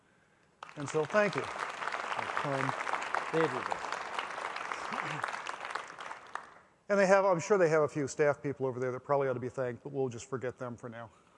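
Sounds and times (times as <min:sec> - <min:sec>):
audience applause: 0:00.6 - 0:06.6
speech: 0:00.8 - 0:01.6, 0:02.4 - 0:03.8, 0:05.0 - 0:05.3, 0:06.9 - 0:11.3.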